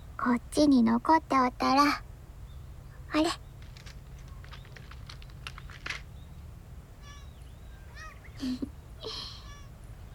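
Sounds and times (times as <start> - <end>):
low steady hum: 0.0 - 10.1
speech: 0.2 - 2.1, 3.1 - 3.4, 8.4 - 9.2
cats meowing while being fed: 7.0 - 8.4, 9.4 - 9.8.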